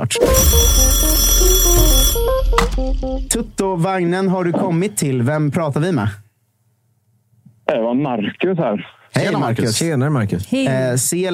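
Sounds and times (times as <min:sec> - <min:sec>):
telephone ringing for incoming call: 0:00.0 - 0:03.8
speech: 0:00.1 - 0:06.2, 0:07.7 - 0:11.3.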